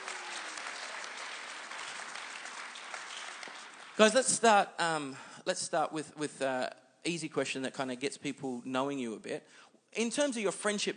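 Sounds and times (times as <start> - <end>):
audience clapping: 0.0 - 4.5
speech: 4.0 - 10.9.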